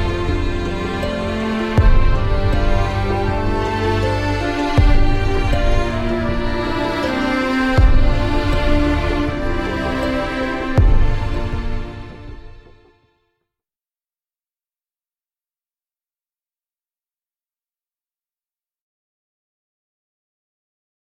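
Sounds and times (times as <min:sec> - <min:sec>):
instrumental music: 0:00.0 - 0:13.2.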